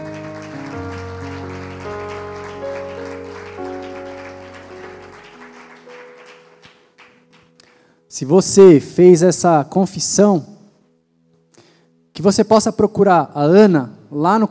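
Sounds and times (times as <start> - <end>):
audience applause: 0.0 - 7.5
speech: 8.2 - 10.5, 12.2 - 14.4.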